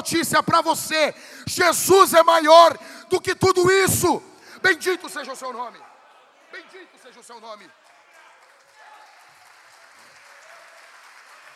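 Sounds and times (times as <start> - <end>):
speech: 0.0 - 5.9, 6.5 - 7.8
audience applause: 7.6 - 11.5.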